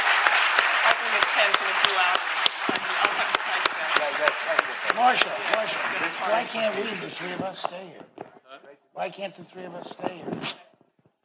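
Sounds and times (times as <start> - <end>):
audience applause for panelists: 0.0 - 7.9
speech: 1.2 - 8.2, 9.0 - 10.7.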